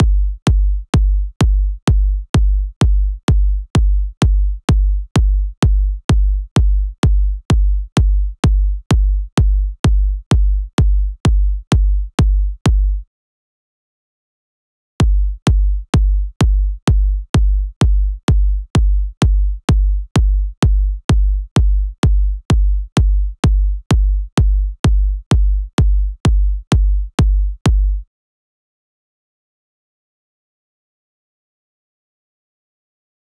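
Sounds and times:
128 BPM kick drum: 0.0s - 13.1s, 15.0s - 28.1s.

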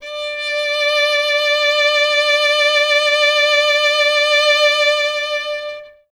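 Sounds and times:
solo violin: 0.0s - 6.1s.

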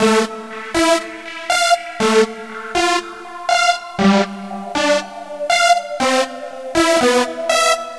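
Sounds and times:
synth lead: 0.0s - 7.9s.

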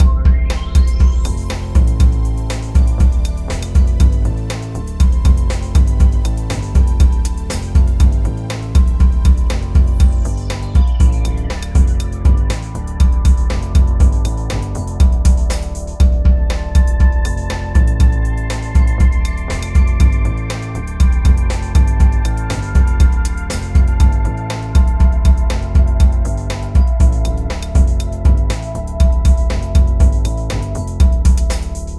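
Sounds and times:
hip-hop beat: 0.0s - 31.9s.

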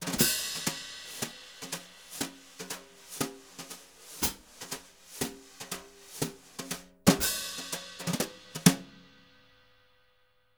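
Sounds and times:
brush: 0.0s - 7.0s, 7.6s - 8.6s.

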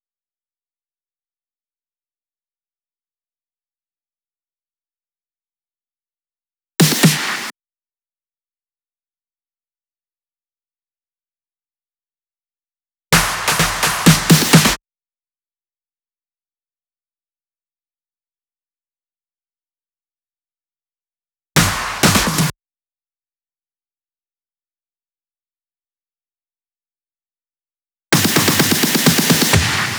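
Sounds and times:
drum and percussion fills at 128 BPM: 6.8s - 7.5s, 13.2s - 14.8s, 21.6s - 22.5s, 28.2s - 29.9s.

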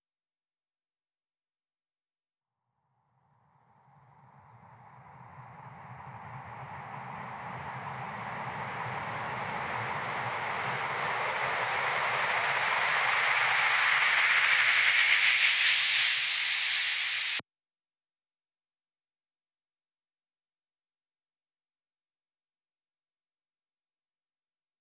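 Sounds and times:
noise feedback uplifter at 128 BPM: 8.6s - 17.4s.

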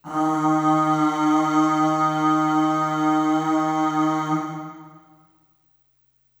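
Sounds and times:
long sung aah on D sharp 2 with short reverb: 0.0s - 5.3s.

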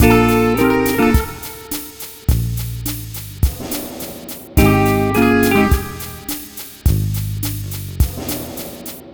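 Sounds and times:
multiple guitars playing bossa nova: 0.0s - 3.3s, 4.6s - 7.7s.

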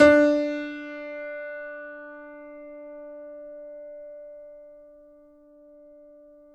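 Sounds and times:
grand piano note D3 played fortissimo: 0.0s - 4.4s.

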